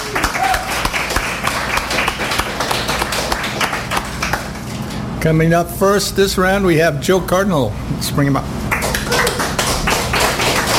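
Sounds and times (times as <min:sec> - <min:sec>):
audience applause at a live show: 0:00.0 - 0:04.6, 0:08.7 - 0:10.7
speech: 0:05.2 - 0:09.2.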